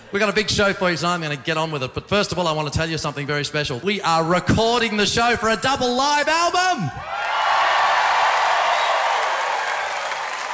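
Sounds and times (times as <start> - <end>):
speech: 0.1 - 7.3
live audience clapping: 7.1 - 10.5.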